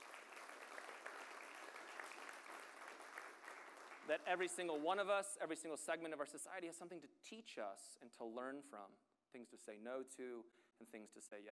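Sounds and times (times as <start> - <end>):
audience applause: 0.0 - 4.9
speech: 4.0 - 11.5.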